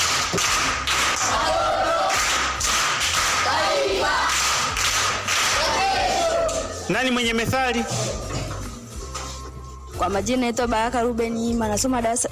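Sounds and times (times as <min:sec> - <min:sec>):
rhythmic group clapping for a pupil at a primary school: 0:00.0 - 0:06.9
speech: 0:06.9 - 0:08.4, 0:10.0 - 0:12.3.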